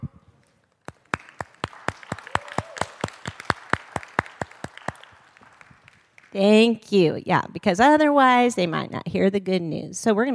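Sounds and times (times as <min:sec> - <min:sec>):
children clapping: 0:00.7 - 0:06.4
speech: 0:06.3 - 0:10.3.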